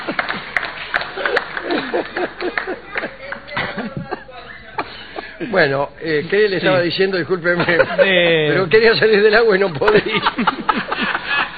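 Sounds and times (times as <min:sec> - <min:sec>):
applause, hands clapping: 0:00.0 - 0:03.9
laughter: 0:00.0 - 0:05.8, 0:06.4 - 0:11.5
speech: 0:05.6 - 0:10.8.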